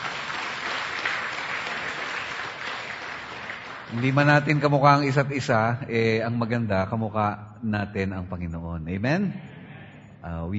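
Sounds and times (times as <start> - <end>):
church congregation clapping praising the Lord: 0.0 - 5.6
speech: 3.9 - 9.5, 10.2 - 10.5.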